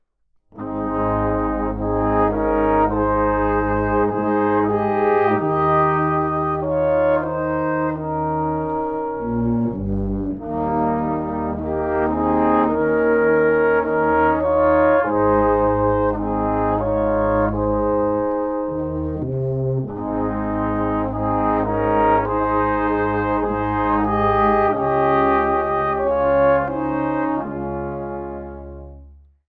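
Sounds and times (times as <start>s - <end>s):
Christmas brass ensemble: 0.5s - 29.4s.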